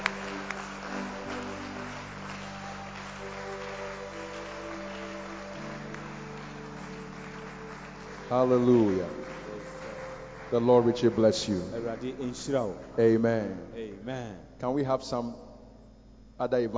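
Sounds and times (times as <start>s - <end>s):
clapping: 0.0s - 12.8s
speech: 8.3s - 9.4s, 10.5s - 15.5s, 16.4s - 16.7s.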